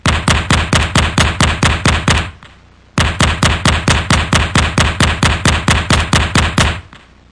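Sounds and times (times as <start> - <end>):
machine gun firing: 0.0 - 2.4, 3.0 - 7.0.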